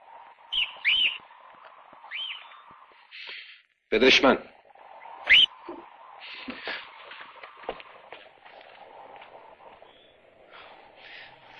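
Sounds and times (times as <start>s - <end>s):
bird chirping: 0.5s - 1.4s, 2.0s - 2.9s, 5.0s - 7.1s
speech: 3.9s - 4.5s.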